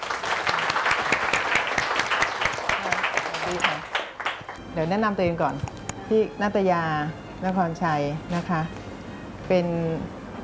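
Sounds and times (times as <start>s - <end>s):
audience applause: 0.0s - 4.6s
speech: 4.8s - 8.8s, 9.5s - 10.2s.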